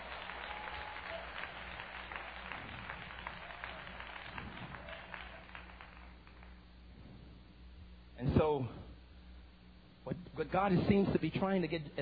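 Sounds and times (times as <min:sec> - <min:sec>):
audience clapping hands: 0:00.0 - 0:06.8
speech: 0:08.2 - 0:08.8, 0:10.1 - 0:12.0.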